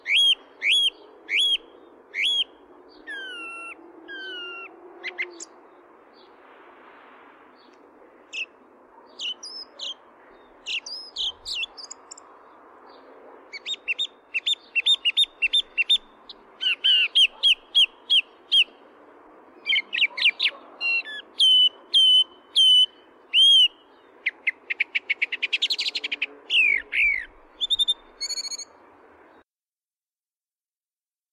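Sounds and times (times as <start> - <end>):
song thrush singing: 0.0 - 6.4, 7.5 - 18.8, 19.5 - 29.4.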